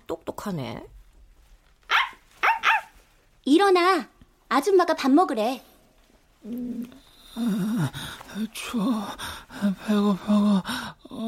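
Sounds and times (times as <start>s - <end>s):
speech: 0.1s - 1.0s, 3.4s - 5.7s, 6.4s - 11.2s
dog barking: 1.9s - 3.0s.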